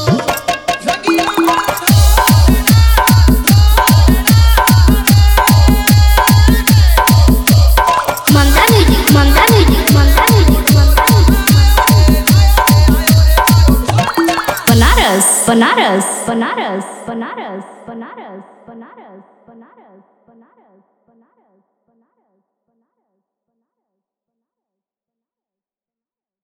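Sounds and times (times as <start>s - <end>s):
old patriotic song DJ remix: 0.0s - 16.3s.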